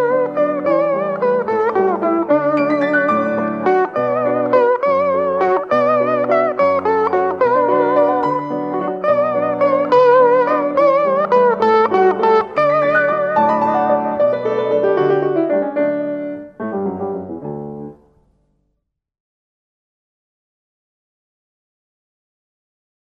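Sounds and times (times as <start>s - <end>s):
Hawaiian guitar playing a festive waltz: 0.0s - 18.0s
piano playing a festive waltz: 0.0s - 18.8s.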